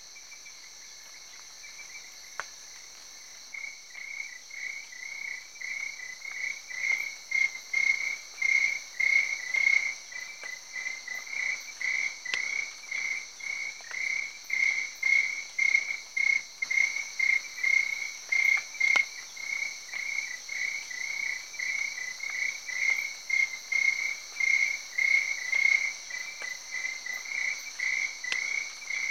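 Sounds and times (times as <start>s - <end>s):
crickets chirping at night in Africa: 0.0s - 29.0s.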